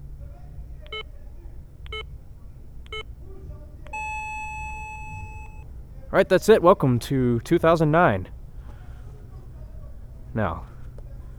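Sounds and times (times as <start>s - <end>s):
low rumble: 0.0s - 11.3s
midnight time signal beeps: 0.9s - 1.1s, 3.9s - 5.7s
speech: 6.1s - 8.4s, 10.4s - 10.7s.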